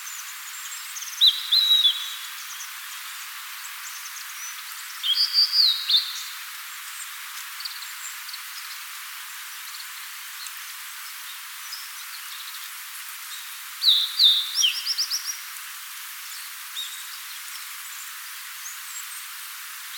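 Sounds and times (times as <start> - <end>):
blue-and-white flycatcher song: 0.0 - 2.7, 4.4 - 6.3, 13.8 - 15.4
faint hiss: 0.0 - 19.9.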